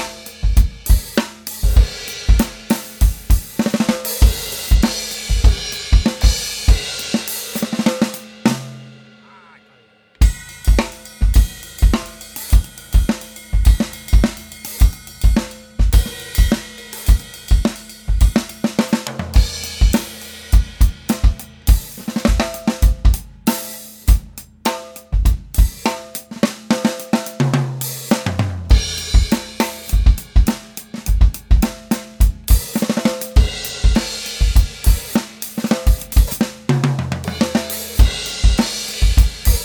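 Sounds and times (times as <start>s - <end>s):
drums recorded on a handheld recorder: 0.0s - 39.6s.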